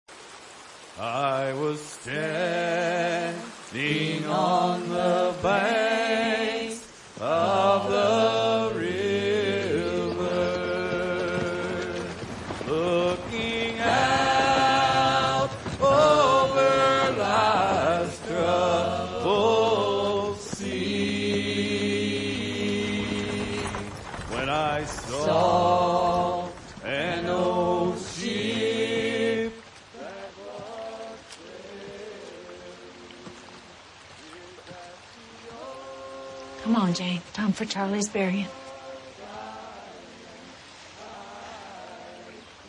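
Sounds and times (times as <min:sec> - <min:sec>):
choir singing at a funeral: 0:01.0 - 0:33.5, 0:34.2 - 0:36.9, 0:38.1 - 0:42.6.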